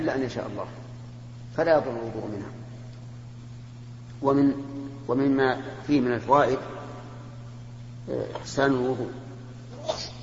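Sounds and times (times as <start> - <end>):
speech: 0.0 - 0.9, 1.6 - 2.7, 4.2 - 6.8, 8.0 - 9.2
low electrical hum: 0.0 - 10.2
sneeze: 9.7 - 10.2.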